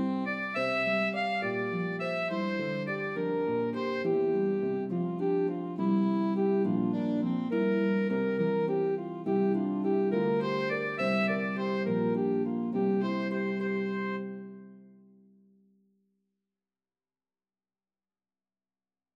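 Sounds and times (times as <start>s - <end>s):
harp: 0.0s - 14.7s
C melody saxophone: 0.0s - 14.8s.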